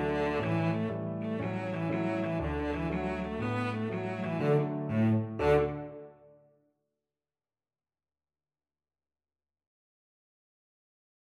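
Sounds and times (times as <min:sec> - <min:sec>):
violoncello: 0:00.0 - 0:06.4.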